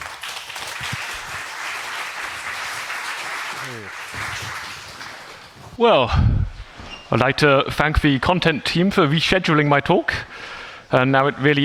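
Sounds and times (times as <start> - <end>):
crowd applauding: 0.0 - 5.8
speech: 3.6 - 4.7, 5.8 - 6.4, 7.1 - 11.6.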